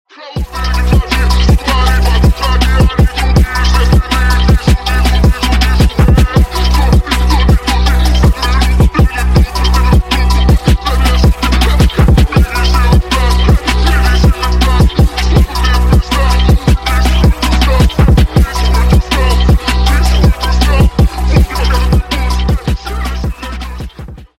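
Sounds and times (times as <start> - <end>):
phonk music: 0.1 - 24.3.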